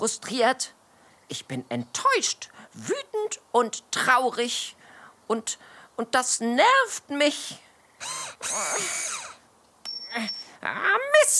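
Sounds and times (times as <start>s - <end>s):
speech: 0.0s - 9.1s, 10.1s - 11.3s
power screwdriver driving a stubborn screw: 8.0s - 9.4s.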